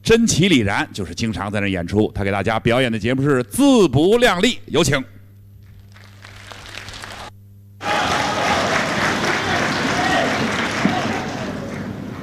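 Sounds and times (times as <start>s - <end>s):
speech: 0.1s - 5.2s
audience clapping at a live crosstalk comedy show: 5.6s - 12.2s.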